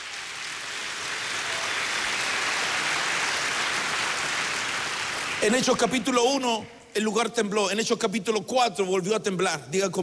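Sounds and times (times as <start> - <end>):
audience applause: 0.0 - 6.1
speech: 5.4 - 10.0.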